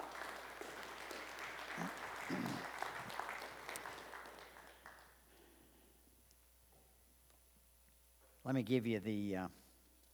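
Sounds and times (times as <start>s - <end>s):
audience applauding: 0.0s - 5.2s
speech: 8.5s - 9.6s.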